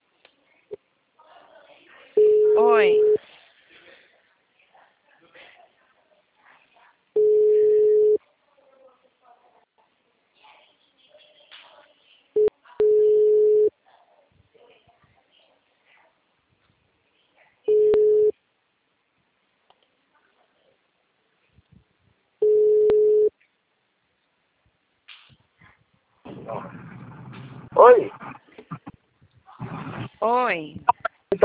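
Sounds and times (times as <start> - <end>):
speech: 2.6 - 3.2, 30.3 - 30.9
telephone busy tone after a dropped call: 7.2 - 8.2, 12.8 - 13.7, 17.7 - 18.3, 22.4 - 23.3
quiet telephone line noise: 26.2 - 31.4
rush of noise: 26.3 - 29.0, 29.6 - 30.2.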